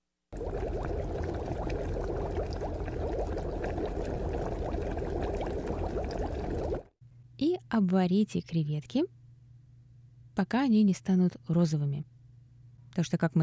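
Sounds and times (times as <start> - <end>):
water pouring into a pot: 0.3 - 6.9
speech: 7.7 - 9.2, 10.4 - 12.1, 13.0 - 13.4.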